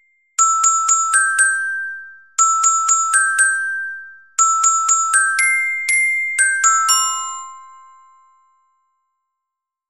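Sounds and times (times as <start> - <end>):
soprano carillon bells: 0.4 - 8.8.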